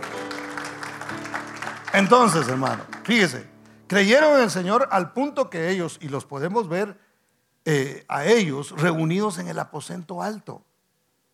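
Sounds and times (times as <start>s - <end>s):
audience applauding: 0.0s - 3.8s
speech: 2.0s - 7.0s, 7.6s - 10.7s.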